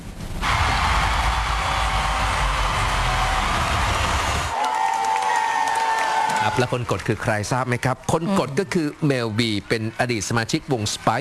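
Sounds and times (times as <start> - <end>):
applause echoing through the hall: 0.4 - 9.6
speech: 6.5 - 11.1.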